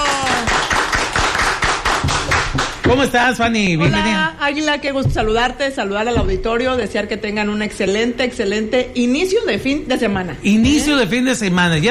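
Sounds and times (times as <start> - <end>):
people clapping in a radio studio booth: 0.0 - 3.6
speech: 2.8 - 11.8.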